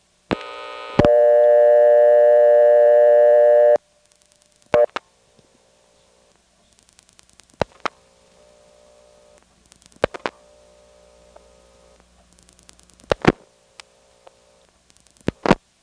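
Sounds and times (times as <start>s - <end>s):
telephone line clicks and crackles: 0.3s - 1.2s, 4.0s - 5.1s, 6.6s - 15.8s
telephone ring on a heavily loaded line: 0.7s - 3.8s.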